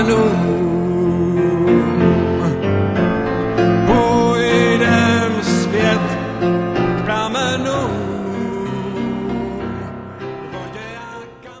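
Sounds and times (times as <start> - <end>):
piano playing the main theme song: 0.0 - 11.5.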